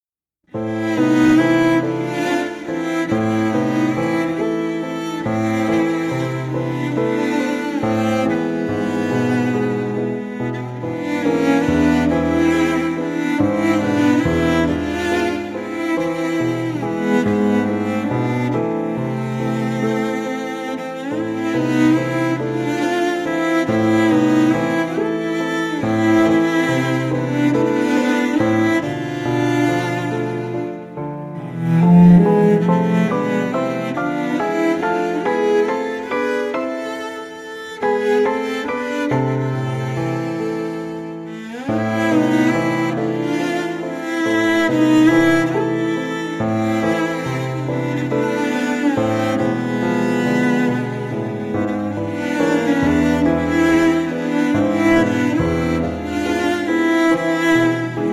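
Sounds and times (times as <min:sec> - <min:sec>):
cello melody: 0:00.5 - 0:58.1.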